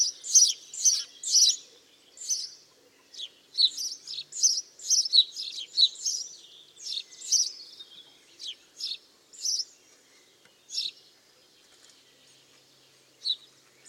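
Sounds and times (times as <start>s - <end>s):
House sparrow Passer domesticus chirping: 0.0s - 9.9s, 10.6s - 11.1s, 13.2s - 13.8s.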